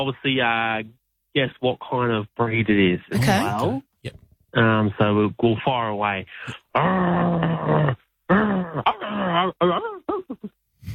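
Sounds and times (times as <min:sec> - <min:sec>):
speech: 0:00.0 - 0:10.6
person imitating a growling dog: 0:03.2 - 0:03.8, 0:06.5 - 0:09.5.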